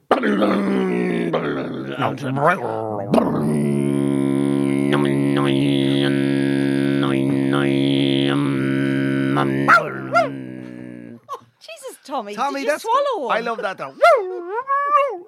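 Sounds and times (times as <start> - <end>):
voice imitating a didgeridoo drone: 0.0 - 11.4
speech: 0.2 - 3.9, 4.9 - 6.2, 12.2 - 14.2.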